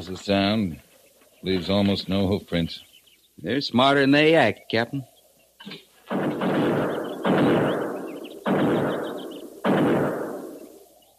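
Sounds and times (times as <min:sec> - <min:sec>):
speech: 0:00.0 - 0:06.4
buffalo gun shots: 0:06.1 - 0:10.8.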